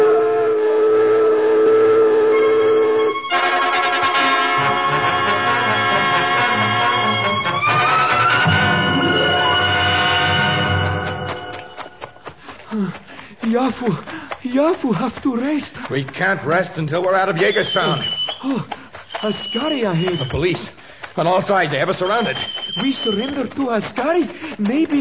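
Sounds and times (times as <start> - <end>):
alarm whistle: 0.0 - 3.6, 4.5 - 11.1, 17.4 - 20.7, 21.3 - 23.6
speech: 13.7 - 25.0.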